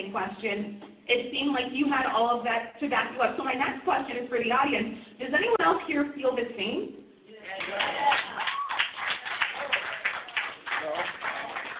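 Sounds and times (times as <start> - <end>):
speech: 0.1 - 8.3
several people clapping in an audience: 7.5 - 11.7.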